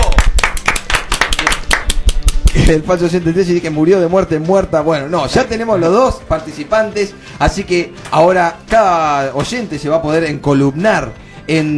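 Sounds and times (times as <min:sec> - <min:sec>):
hand claps for two contest participants in a studio: 0:00.0 - 0:02.8
speech: 0:02.6 - 0:11.7.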